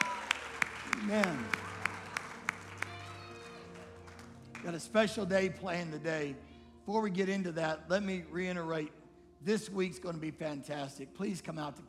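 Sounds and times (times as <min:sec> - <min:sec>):
hand claps from a church congregation in a praise service: 0:00.0 - 0:04.8
speech: 0:04.6 - 0:11.8.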